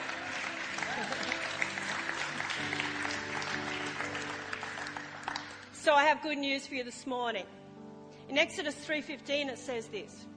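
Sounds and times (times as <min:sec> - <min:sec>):
laughter: 0:00.0 - 0:02.2
audience applauding: 0:00.0 - 0:05.8
speech: 0:05.9 - 0:07.6, 0:08.3 - 0:10.3.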